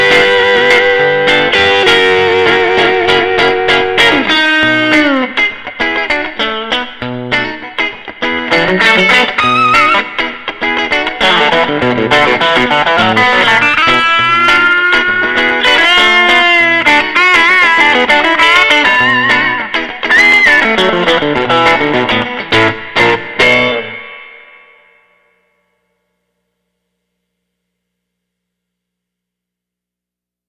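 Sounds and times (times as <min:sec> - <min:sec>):
Telecaster rhythm electric guitar: 0:00.0 - 0:25.1.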